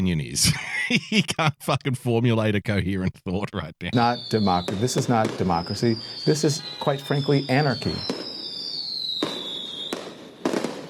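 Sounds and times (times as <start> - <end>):
speech: 0.0 - 8.3
laughter: 0.4 - 1.9
bottle rockets going off: 3.9 - 10.8.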